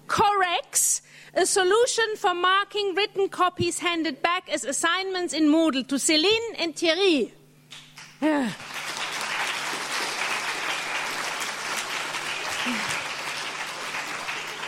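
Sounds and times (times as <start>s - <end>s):
speech: 1.4s - 7.4s, 8.2s - 8.8s
audience clapping: 7.7s - 14.6s.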